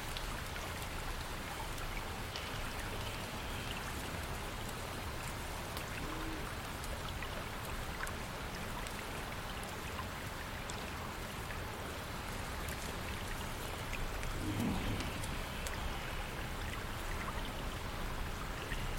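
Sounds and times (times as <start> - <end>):
gentle water flowing from a distant watermill: 0.1 - 18.9
low rumble: 14.1 - 16.7.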